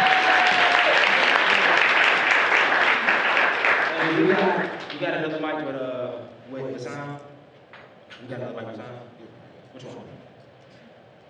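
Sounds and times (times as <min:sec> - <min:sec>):
crowd applause: 0:00.0 - 0:05.4
speech: 0:05.0 - 0:07.3, 0:08.2 - 0:09.2, 0:09.8 - 0:10.3.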